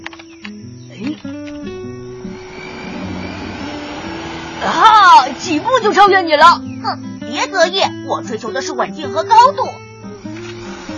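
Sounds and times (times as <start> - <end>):
small electric motor whirring: 1.3 - 6.6, 10.0 - 10.9
speech: 5.5 - 9.8.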